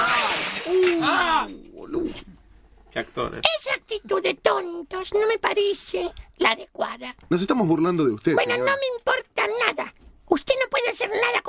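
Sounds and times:
thrown glass shattering with tinkling fragments: 0.0s - 1.6s
speech: 2.9s - 11.4s.

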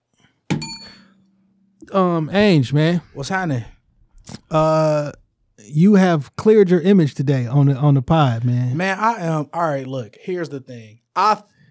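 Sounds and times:
gavel bang: 0.5s - 1.0s
speech: 1.8s - 3.8s, 4.5s - 11.5s.

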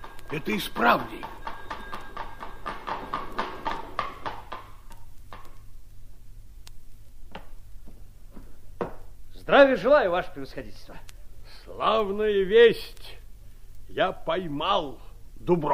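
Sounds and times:
small carriage bell ringing: 0.0s - 4.0s
speech: 0.3s - 1.4s, 9.5s - 11.1s, 11.7s - 13.0s, 13.9s - 15.7s.

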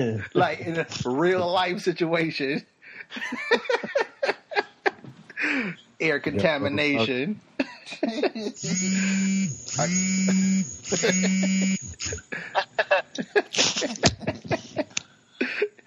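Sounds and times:
people laughing: 0.0s - 1.9s, 2.9s - 5.7s, 6.3s - 15.8s
speech: 0.0s - 4.1s, 5.4s - 14.2s
phone vibrating alarm buzzing: 8.6s - 12.2s.

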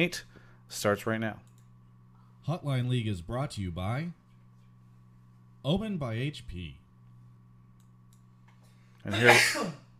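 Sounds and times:
speech: 0.0s - 1.5s, 2.4s - 4.2s, 5.6s - 6.8s, 9.0s - 9.8s
low steady electrical hum: 0.0s - 9.9s
sneeze: 9.1s - 9.9s.

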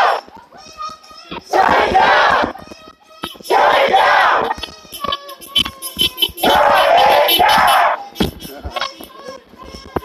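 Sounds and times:
protesters chanting in Niagara Square, Buffalo: 0.0s - 0.3s, 1.5s - 2.6s, 3.3s - 8.9s
scattered voices: 0.0s - 10.0s.

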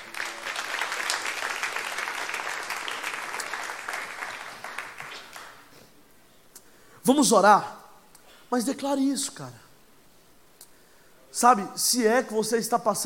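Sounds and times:
large audience applauding loudly: 0.0s - 5.7s
speech: 7.1s - 7.8s, 8.5s - 9.6s, 11.4s - 13.0s.

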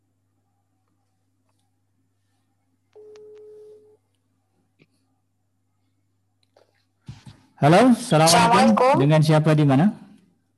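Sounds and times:
telephone tone calling a listener on a religious call-in programme: 3.0s - 4.0s
speech: 7.6s - 10.0s.

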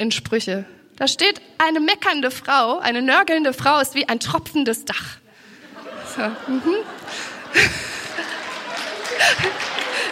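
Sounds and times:
speech: 0.0s - 5.2s, 6.2s - 7.9s
laughter: 5.5s - 10.1s
audience applause: 7.0s - 10.1s.

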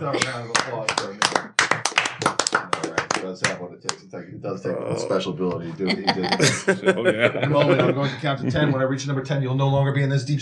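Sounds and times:
speech: 0.0s - 1.0s, 4.4s - 10.4s
laughter: 0.0s - 1.6s, 2.5s - 10.3s
audience applause: 0.0s - 3.6s.

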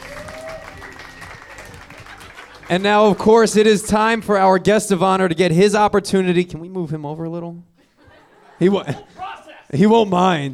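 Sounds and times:
audience applause: 0.0s - 3.8s
laughter: 1.3s - 3.8s, 7.8s - 10.5s
speech: 2.7s - 7.7s, 8.6s - 10.5s.

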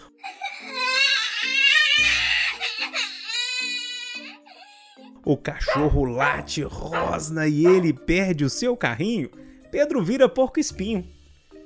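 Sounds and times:
small child crying: 0.2s - 5.1s
speech: 5.3s - 11.2s.

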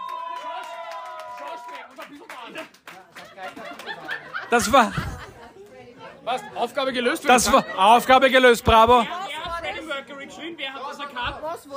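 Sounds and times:
applause: 0.0s - 4.4s
speech: 1.4s - 5.4s, 6.2s - 9.2s, 10.0s - 11.7s
laughter: 2.2s - 9.2s.

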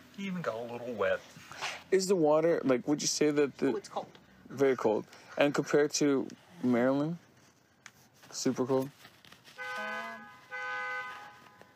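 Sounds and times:
speech: 0.2s - 7.2s, 8.3s - 9.0s
car alarm chirp: 9.6s - 11.4s.

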